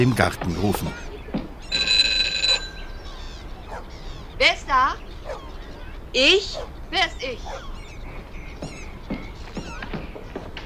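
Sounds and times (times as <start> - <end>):
speech: 0.0 - 1.1, 6.2 - 7.8
electric doorbell ringing: 1.7 - 3.3.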